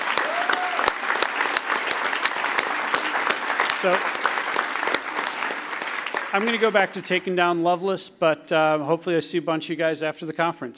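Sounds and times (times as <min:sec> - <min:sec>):
audience round of applause: 0:00.0 - 0:07.4
speech: 0:03.8 - 0:04.2, 0:06.3 - 0:10.7.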